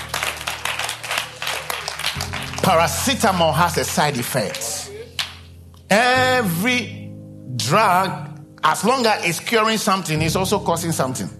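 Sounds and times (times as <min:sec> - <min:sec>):
audience clapping hands: 0:00.0 - 0:05.5
speech: 0:02.7 - 0:04.7, 0:05.9 - 0:07.0, 0:07.6 - 0:11.3.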